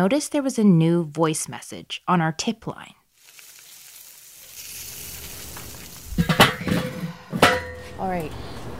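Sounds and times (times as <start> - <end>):
speech: 0.0 - 3.0, 8.0 - 8.5
food sizzling on a grill: 3.1 - 6.4.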